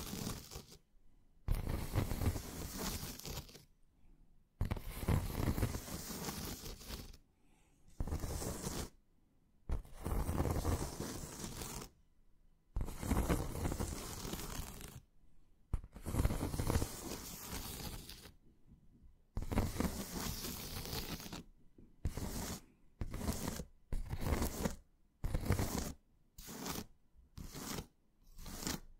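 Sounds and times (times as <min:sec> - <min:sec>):
hands scratching, stroking and squeezing over a surface: 0:00.0 - 0:00.8, 0:01.5 - 0:03.7, 0:04.6 - 0:07.2, 0:08.0 - 0:09.0, 0:09.7 - 0:11.9, 0:12.8 - 0:15.0, 0:15.8 - 0:18.4, 0:19.4 - 0:21.5, 0:22.1 - 0:28.9.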